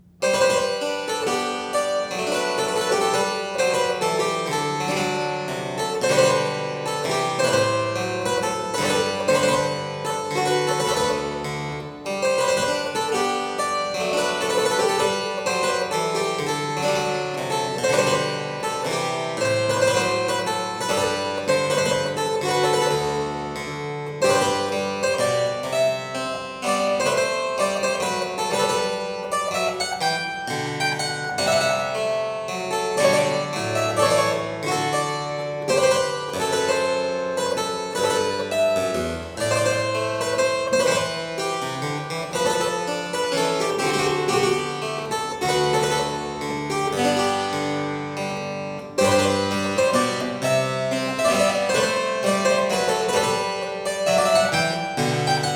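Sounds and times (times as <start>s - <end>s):
minuet: 0.0s - 55.5s.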